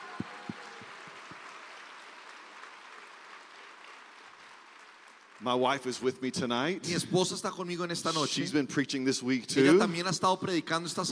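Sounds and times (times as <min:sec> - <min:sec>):
audience applause: 0:00.0 - 0:06.8
speech: 0:05.4 - 0:11.0.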